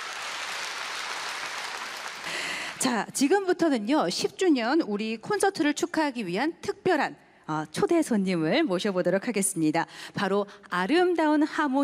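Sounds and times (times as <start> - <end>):
concert audience applause after a Buddhist monk's seungmu dance: 0.0 - 2.8
speech: 2.8 - 11.8.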